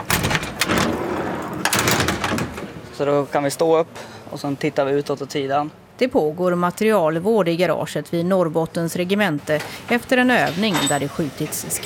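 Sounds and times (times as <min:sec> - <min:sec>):
heavy hatches on a Stridsfordon 90 combat vehicle opening in a garage: 0:00.0 - 0:02.7
speech: 0:03.0 - 0:11.8.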